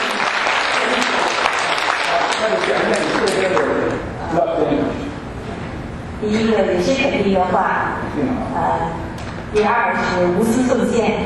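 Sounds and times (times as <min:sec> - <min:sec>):
audience applause: 0:00.0 - 0:03.9
speech: 0:02.4 - 0:05.0, 0:06.2 - 0:11.2.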